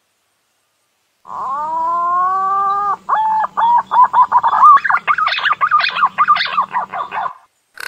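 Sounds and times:
green pigeon whistling: 1.6 - 7.4.

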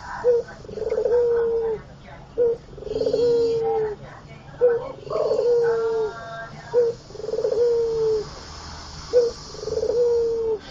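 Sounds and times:
Barbary dove cooing: 0.0 - 4.0, 4.6 - 8.3, 9.1 - 10.6.

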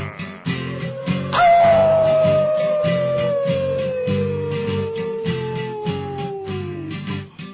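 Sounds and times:
dogs howling: 0.0 - 7.1.

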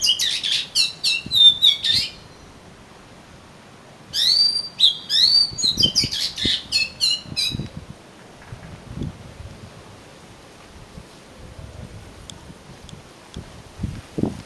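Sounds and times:
Oriental magpie-robin song of chirps, trills and whistled notes: 0.0 - 2.5, 4.1 - 7.8.

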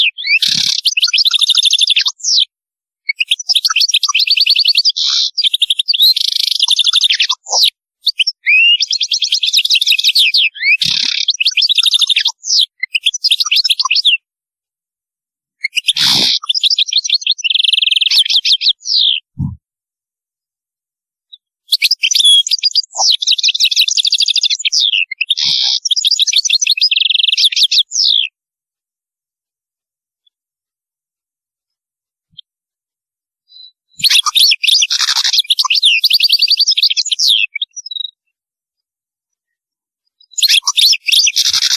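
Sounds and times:
European goldfinch twittering song: 0.0 - 2.5, 3.1 - 14.2, 15.6 - 19.3, 21.3 - 28.3, 33.5 - 38.2, 40.2 - 41.7.

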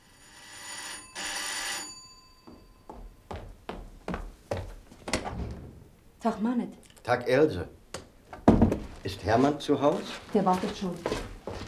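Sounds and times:
doorbell ringing: 0.0 - 3.2
speech: 6.2 - 7.8, 9.2 - 11.3.

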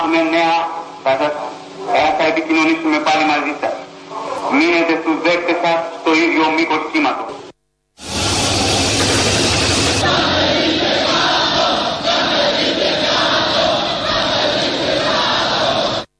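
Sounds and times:
speech: 0.1 - 3.8, 4.5 - 7.4
brief tonal burst: 8.0 - 10.9
large crowd shouting and chanting: 8.6 - 16.1.

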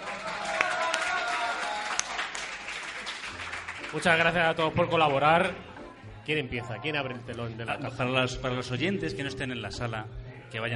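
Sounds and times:
audience applause: 0.0 - 5.5
speech: 3.9 - 5.7, 6.3 - 10.7.

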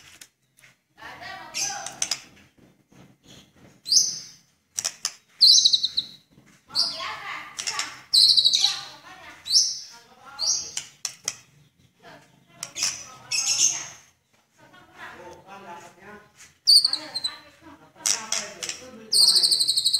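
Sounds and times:
Oriental magpie-robin singing: 1.1 - 2.1, 3.3 - 14.2, 16.6 - 19.9.

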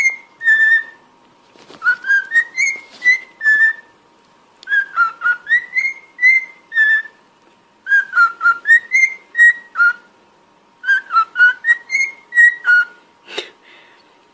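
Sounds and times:
cockatiel whistling: 0.0 - 1.1, 1.8 - 3.9, 4.6 - 7.2, 7.8 - 10.1, 10.8 - 13.0
faint hum: 0.0 - 14.3.

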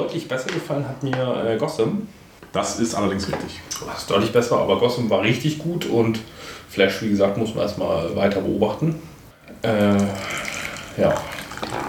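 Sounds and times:
speech: 0.0 - 10.4, 11.0 - 11.3
tea poured into a cup: 9.8 - 11.8.

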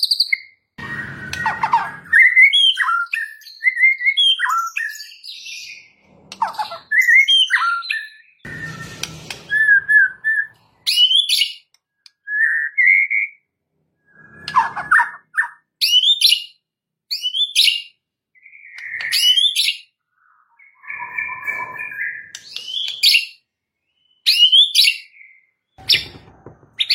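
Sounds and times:
white-rumped shama song: 0.0 - 26.2.

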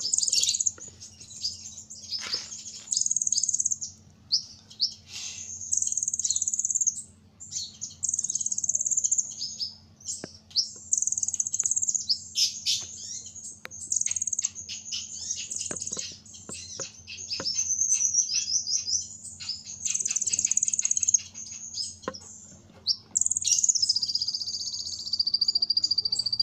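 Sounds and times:
small bird giving very high fast trills and thin chirps: 0.0 - 26.4.

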